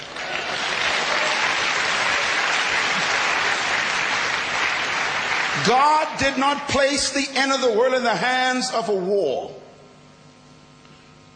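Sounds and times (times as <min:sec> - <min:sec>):
audience clapping: 0:00.0 - 0:06.4
speech: 0:05.6 - 0:09.6.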